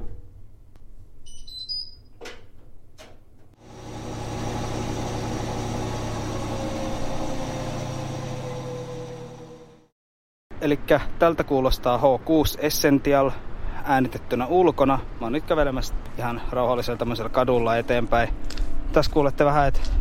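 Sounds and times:
washing machine running with steady rumble and hum: 0:03.6 - 0:09.9
speech: 0:10.6 - 0:19.9.

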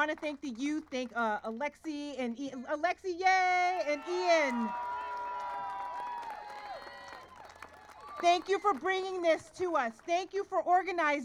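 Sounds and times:
speech: 0:00.0 - 0:05.0, 0:08.2 - 0:11.2
outdoor rally crowd against drilling in Brentwood applauding: 0:03.8 - 0:09.1.

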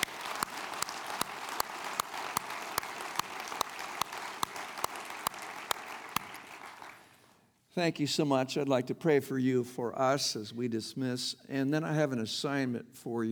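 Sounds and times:
audience applause: 0:00.0 - 0:07.2
speech: 0:07.8 - 0:13.3.

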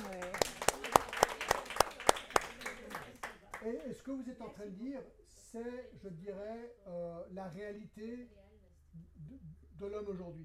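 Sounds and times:
audience applause: 0:00.0 - 0:03.9
speech: 0:03.6 - 0:08.4, 0:09.0 - 0:10.4.

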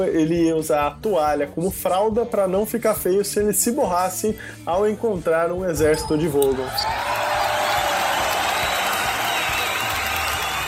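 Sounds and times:
speech: 0:00.0 - 0:07.3
crowd applause and cheering: 0:06.4 - 0:10.6.

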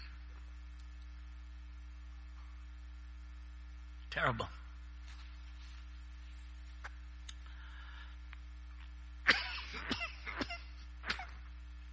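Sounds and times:
low steady hum: 0:00.0 - 0:11.9
speech: 0:04.2 - 0:04.6
throat clearing from persisting minor throat irritation: 0:09.3 - 0:11.5.

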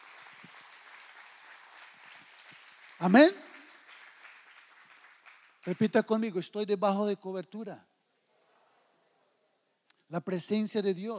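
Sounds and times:
applause: 0:00.0 - 0:06.7
speech: 0:03.0 - 0:03.4, 0:05.6 - 0:07.9, 0:10.1 - 0:11.1.

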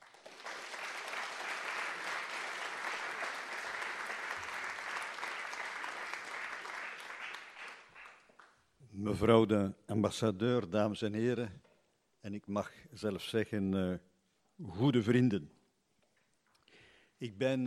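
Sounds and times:
audience applause: 0:00.0 - 0:08.6
speech: 0:09.0 - 0:11.6, 0:12.2 - 0:15.6, 0:17.2 - 0:17.6.

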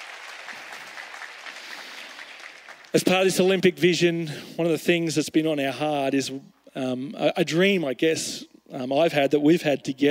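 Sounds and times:
audience applause: 0:00.0 - 0:03.3
speech: 0:02.9 - 0:10.0.

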